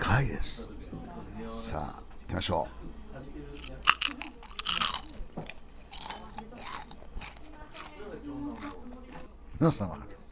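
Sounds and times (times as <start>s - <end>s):
speech: 0.1s - 3.9s, 9.6s - 10.1s
crispy deep-fried duck skin crunching as it is bitten: 3.6s - 9.3s.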